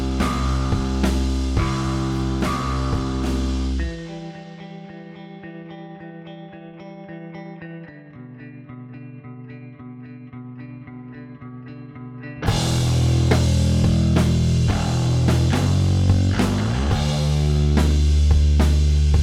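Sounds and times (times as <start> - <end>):
bass: 0.0 - 5.8, 7.6 - 19.2
drums: 0.0 - 6.0, 12.4 - 19.2.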